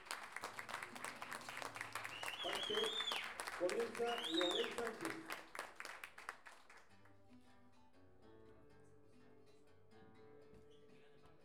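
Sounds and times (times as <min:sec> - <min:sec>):
audience applause: 0:00.0 - 0:06.9
speech: 0:02.4 - 0:03.0, 0:03.6 - 0:05.4.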